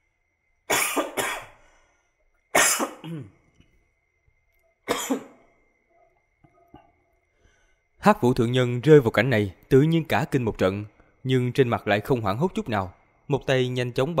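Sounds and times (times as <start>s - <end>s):
harsh coughing: 0.7s - 1.6s, 2.5s - 3.4s, 4.9s - 5.5s
speech: 3.0s - 3.4s, 8.0s - 14.1s.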